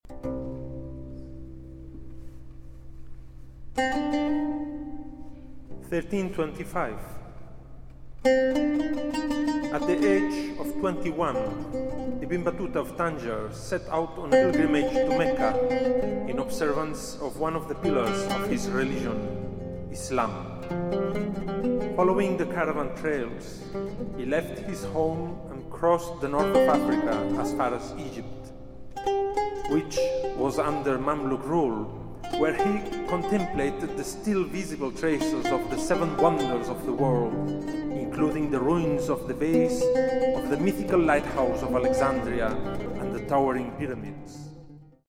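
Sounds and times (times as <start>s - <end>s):
taqsim instrumental improvisation: 0.1s - 45.0s
person narrating: 5.8s - 7.3s, 9.7s - 20.6s, 22.0s - 28.5s, 29.7s - 44.5s.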